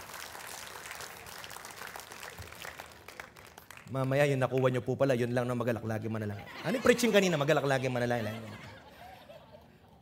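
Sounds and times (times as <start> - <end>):
church congregation applauding: 0.0 - 4.2
speech: 3.9 - 8.7
laughter: 6.3 - 10.0.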